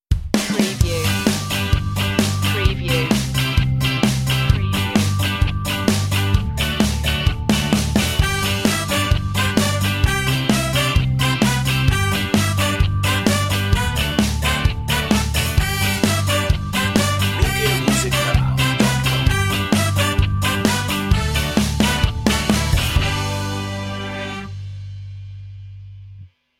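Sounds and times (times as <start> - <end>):
ska pop music: 0.1 - 24.8.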